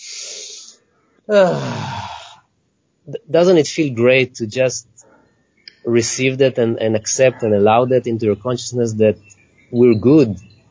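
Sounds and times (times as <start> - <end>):
long sighing exhale: 0.0 - 2.4
soft airy inhale: 0.0 - 2.5
speech: 1.3 - 2.0, 3.1 - 5.0, 5.8 - 10.6.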